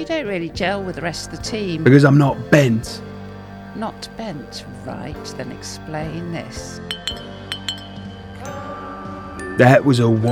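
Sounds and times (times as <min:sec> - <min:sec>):
speech: 0:00.0 - 0:03.1, 0:03.8 - 0:07.3, 0:09.6 - 0:10.3
glass kombucha bottle clinking down: 0:06.9 - 0:08.4.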